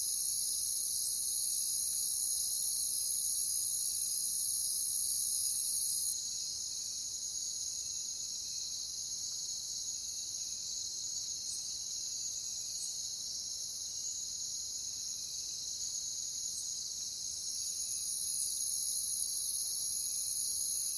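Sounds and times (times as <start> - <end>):
crickets chirping: 0.0 - 20.9.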